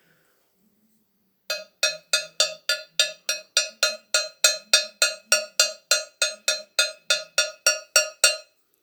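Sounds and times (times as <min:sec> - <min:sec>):
cowbell-like rattle: 0:01.5 - 0:08.5.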